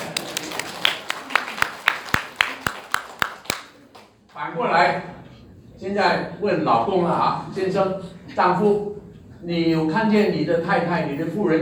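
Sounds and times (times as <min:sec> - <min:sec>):
audience applause with rhythmic clapping: 0:00.0 - 0:04.4
speech: 0:04.4 - 0:05.2, 0:05.8 - 0:11.6.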